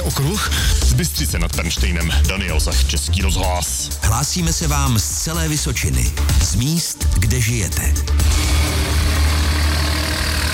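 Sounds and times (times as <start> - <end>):
speech: 0.1 - 8.4
loader driving at the narrow-gauge railway station in Kamenice nad Lipou carrying oak sleepers: 8.1 - 10.5.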